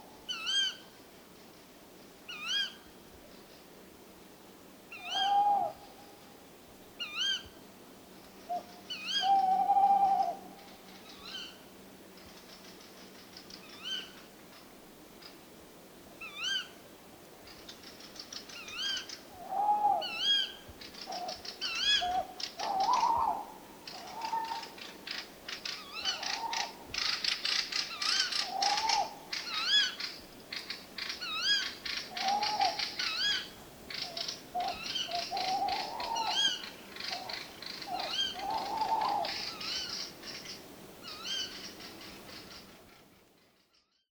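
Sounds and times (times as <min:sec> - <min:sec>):
Strix aluco Eurasian tawny owl: 0:00.3 - 0:00.8, 0:04.9 - 0:05.8, 0:08.5 - 0:11.6, 0:16.2 - 0:16.8, 0:17.7 - 0:43.0.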